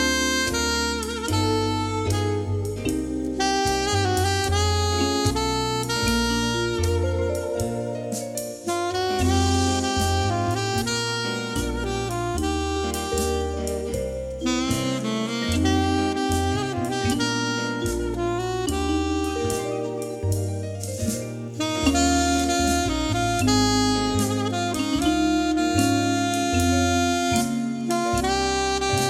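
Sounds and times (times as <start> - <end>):
alto saxophone performance: 0.0 - 29.0.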